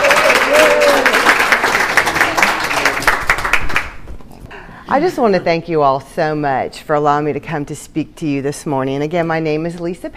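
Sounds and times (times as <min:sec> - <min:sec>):
crowd clapping to welcome a speaker to the stage: 0:00.0 - 0:04.1
speech: 0:05.0 - 0:10.1.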